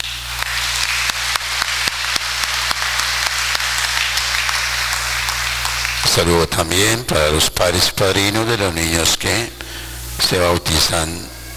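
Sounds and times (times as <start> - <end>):
audience applause: 0.0 - 6.5
speech: 6.2 - 11.5.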